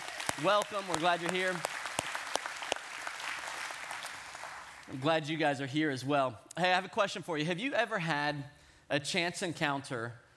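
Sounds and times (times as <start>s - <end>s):
audience applauding to welcome the Manning campus: 0.0s - 5.2s
speech: 0.4s - 1.8s, 4.9s - 10.2s.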